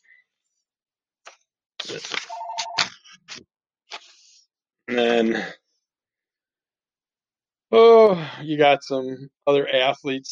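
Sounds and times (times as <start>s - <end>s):
speech: 1.9s - 2.4s, 4.9s - 5.6s, 7.7s - 10.3s
electronic phone ring: 2.3s - 2.8s.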